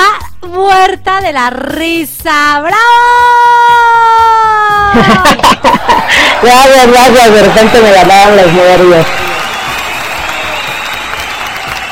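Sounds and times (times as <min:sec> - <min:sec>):
speech: 0:00.9 - 0:09.3
laughter: 0:04.8 - 0:07.3
crowd applauding: 0:05.2 - 0:11.9.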